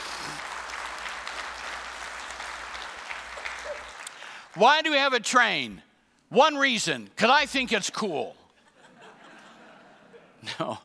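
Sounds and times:
audience applause: 0:00.0 - 0:04.6
speech: 0:04.6 - 0:08.4, 0:10.4 - 0:10.8
laughter: 0:08.7 - 0:10.8.

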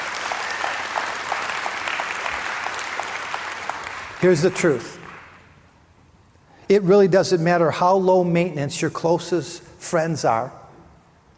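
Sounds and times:
crowd applause: 0:00.0 - 0:05.4
speech: 0:04.2 - 0:05.0, 0:06.7 - 0:10.6.

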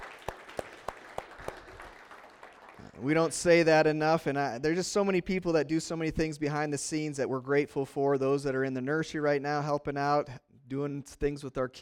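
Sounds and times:
audience applause: 0:00.0 - 0:03.3
speech: 0:03.0 - 0:11.8.

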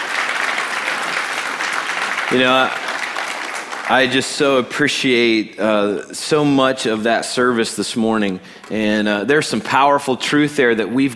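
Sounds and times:
audience applause: 0:00.0 - 0:04.9
speech: 0:02.3 - 0:02.8, 0:03.9 - 0:11.1.

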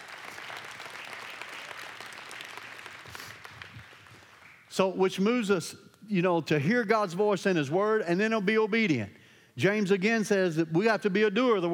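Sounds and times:
audience hand clapping: 0:00.0 - 0:04.7
speech: 0:04.8 - 0:11.7.

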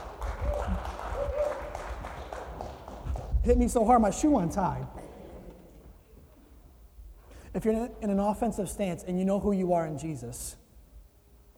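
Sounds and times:
crowd applauding: 0:00.0 - 0:03.8
speech: 0:03.4 - 0:05.0, 0:07.6 - 0:10.6.

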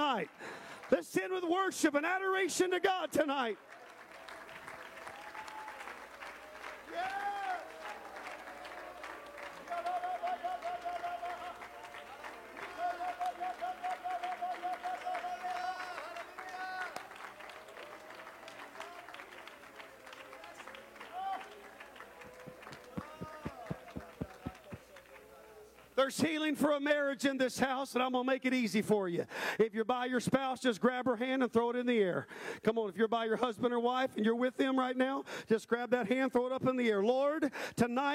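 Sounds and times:
audience clapping hands: 0:00.0 - 0:01.5, 0:02.8 - 0:26.0
speech: 0:00.2 - 0:03.8, 0:06.9 - 0:07.3, 0:26.0 - 0:38.1.

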